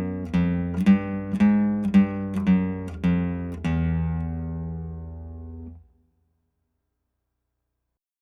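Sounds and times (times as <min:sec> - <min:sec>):
flats on fifth and sixth guitar strings: 0:00.0 - 0:06.0.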